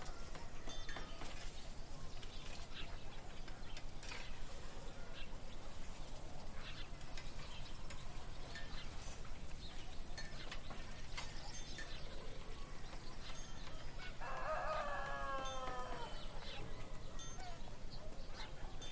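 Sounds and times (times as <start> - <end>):
birds singing: 0.0 - 18.9
loud animal call: 13.7 - 18.9.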